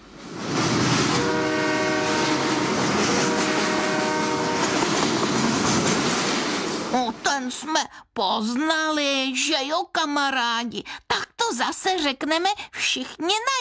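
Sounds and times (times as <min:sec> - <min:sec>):
train rumbling past: 0:00.0 - 0:07.3
train horn blaring: 0:01.0 - 0:05.3
speech: 0:07.5 - 0:13.6.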